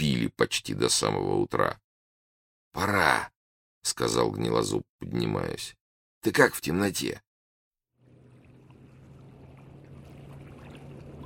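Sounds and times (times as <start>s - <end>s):
speech: 0.2s - 1.8s, 2.7s - 7.2s
motorboat moving through a strait: 8.0s - 11.2s
waves slapping the motorboat hull: 8.1s - 11.2s.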